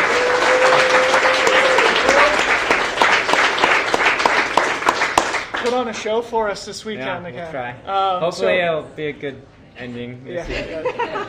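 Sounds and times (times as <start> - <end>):
crowd applause: 0.0 - 5.9
speech: 5.8 - 11.2
laughter: 10.4 - 11.2.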